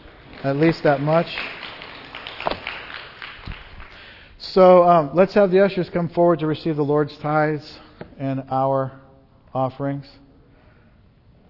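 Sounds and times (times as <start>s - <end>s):
church congregation clapping during a worship service: 0.0s - 4.3s
speech: 0.4s - 1.6s, 4.5s - 10.2s.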